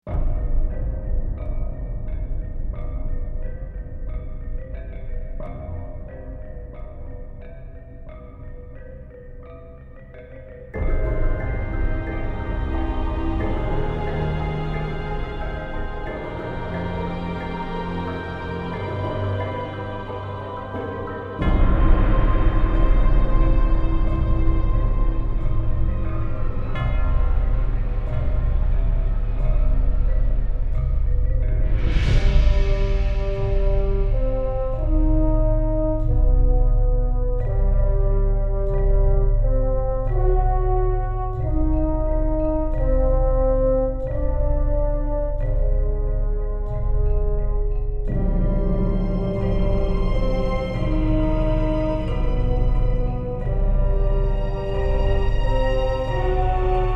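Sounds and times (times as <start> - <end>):
outdoor ambience: 0.0 - 56.9.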